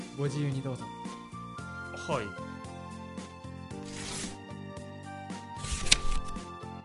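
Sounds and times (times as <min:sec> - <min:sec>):
soft music: 0:00.0 - 0:06.8
speech: 0:00.2 - 0:01.2, 0:02.1 - 0:02.5
paper envelope being torn open: 0:03.8 - 0:04.4, 0:05.6 - 0:06.4.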